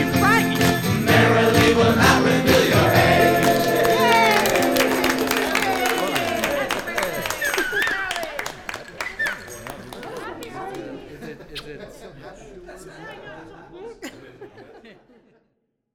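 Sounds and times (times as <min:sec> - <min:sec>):
birthday song: 0:00.0 - 0:06.9
laughter: 0:03.1 - 0:15.5.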